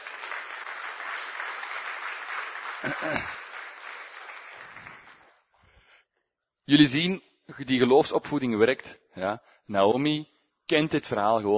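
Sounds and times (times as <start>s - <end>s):
audience applause: 0.0s - 5.4s
speech: 2.8s - 3.4s, 6.7s - 11.5s.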